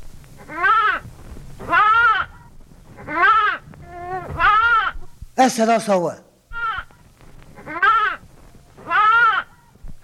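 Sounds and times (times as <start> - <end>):
lamb bleating: 0.4 - 1.0, 1.6 - 2.4, 3.0 - 5.0, 6.5 - 7.0, 7.6 - 8.2, 8.8 - 9.7
speech: 5.4 - 6.2.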